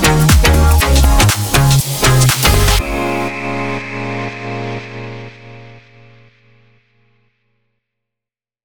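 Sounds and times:
house music: 0.0 - 6.8.

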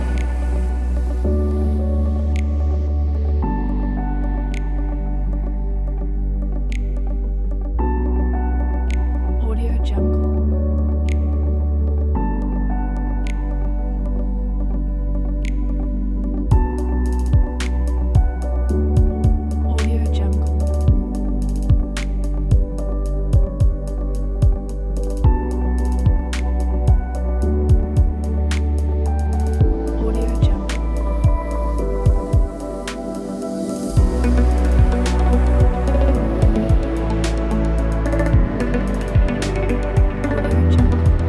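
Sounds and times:
chill ambient music: 0.0 - 41.2.

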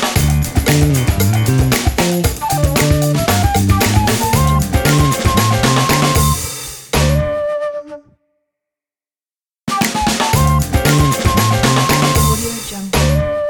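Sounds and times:
funky bass logo: 0.2 - 7.3, 10.3 - 13.3.

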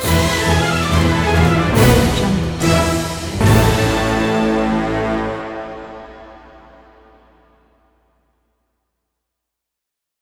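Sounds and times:
funny fast motion chase music: 0.0 - 6.7.

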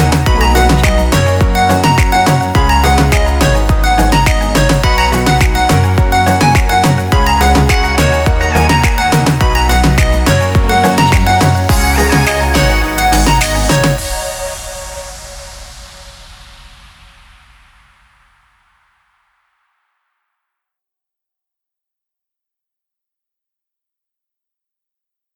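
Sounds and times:
summer party dance pop music: 0.0 - 15.8.

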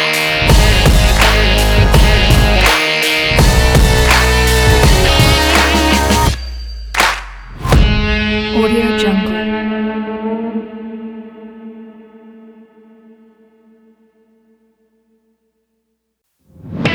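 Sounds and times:
sporty stylish hip hop guitar: 0.0 - 6.5, 7.1 - 12.0.

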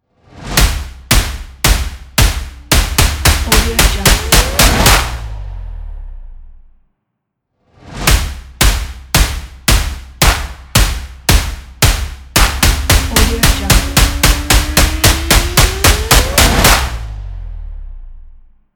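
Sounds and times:
hits and stomps logo: 0.4 - 5.8, 7.9 - 17.4.

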